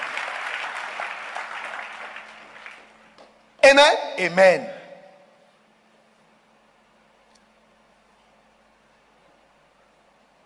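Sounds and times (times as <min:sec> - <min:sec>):
audience clapping hands: 0:00.0 - 0:03.2
speech: 0:03.7 - 0:04.8.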